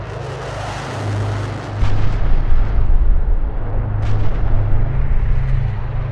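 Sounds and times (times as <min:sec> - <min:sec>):
bomber aircraft approaching at night: 0:00.0 - 0:06.0
bombs exploding over a village house: 0:01.8 - 0:06.0.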